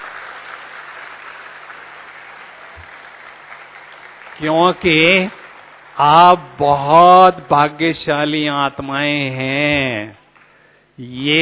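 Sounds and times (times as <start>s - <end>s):
audience applause at a spiritual gathering: 0.0s - 6.6s
speech: 4.4s - 5.4s, 6.0s - 10.2s, 11.0s - 11.3s.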